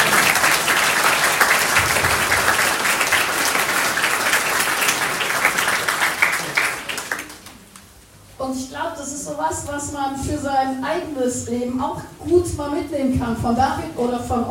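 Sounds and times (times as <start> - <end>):
audience applause: 0.0 - 7.9
speech: 9.4 - 14.4.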